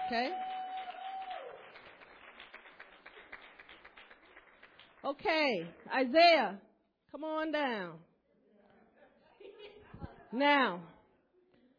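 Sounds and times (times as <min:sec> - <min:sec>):
audience applause: 0:00.0 - 0:05.0
speech: 0:00.1 - 0:00.6, 0:05.0 - 0:08.1, 0:10.3 - 0:10.9.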